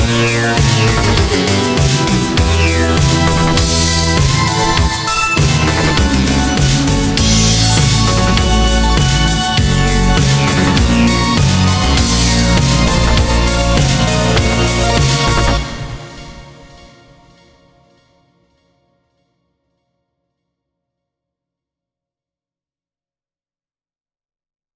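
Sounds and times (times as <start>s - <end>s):
synthwave music: 0.0s - 17.4s.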